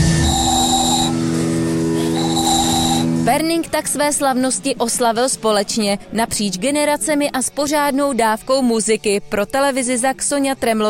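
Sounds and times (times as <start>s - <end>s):
homemade whistle being blown: 0.0s - 3.1s
speech: 3.3s - 10.8s.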